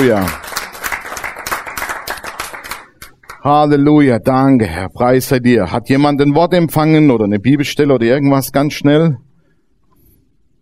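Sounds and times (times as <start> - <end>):
speech: 0.0 - 0.5, 3.4 - 9.2
congregation clapping in a German church service: 0.0 - 3.5.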